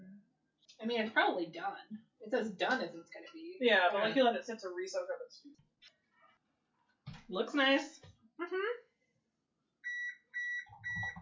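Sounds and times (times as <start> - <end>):
speech: 0.8 - 5.6, 7.3 - 8.8
oven timer beeping: 9.9 - 11.2.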